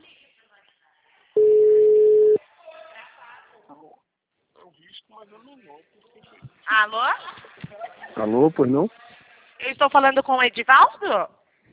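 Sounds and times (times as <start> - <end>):
telephone ringback tone of an outgoing call: 1.4 - 2.4
speech: 5.5 - 7.4, 8.2 - 9.0, 9.8 - 11.4.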